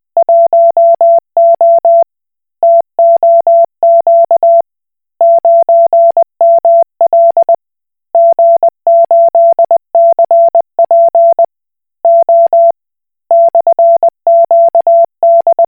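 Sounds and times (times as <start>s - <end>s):
Koch Morse code beeps: 0.2s - 2.0s, 2.6s - 4.6s, 5.2s - 7.6s, 8.2s - 11.5s, 12.1s - 12.7s, 13.3s - 15.6s.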